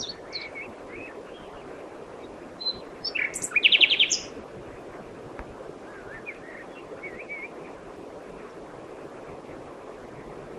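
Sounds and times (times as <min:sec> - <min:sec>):
Common nightingale song: 0:00.0 - 0:01.6, 0:02.2 - 0:04.4, 0:05.9 - 0:07.6
soft background hiss: 0:00.0 - 0:10.5.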